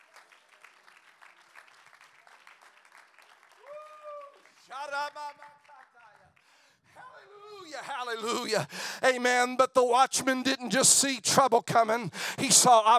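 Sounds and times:
audience clapping hands: 0:00.0 - 0:06.5
speech: 0:04.7 - 0:05.7, 0:07.7 - 0:12.9.

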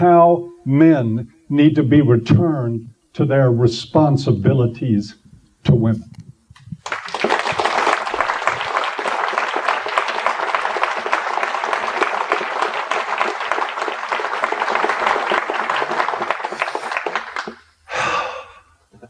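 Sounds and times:
speech: 0:00.0 - 0:06.2
audience applause: 0:06.8 - 0:18.4.

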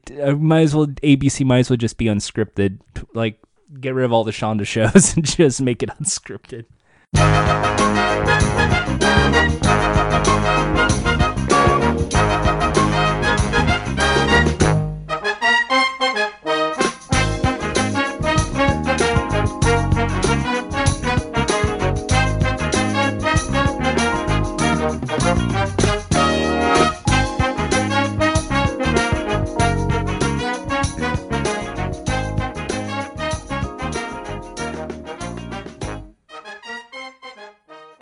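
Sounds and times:
speech: 0:00.1 - 0:10.8
upbeat TV game show theme music: 0:07.2 - 0:37.5.

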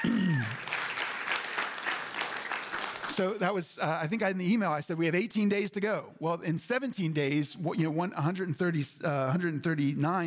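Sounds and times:
audience applause: 0:00.0 - 0:03.4
speech: 0:03.2 - 0:10.2.

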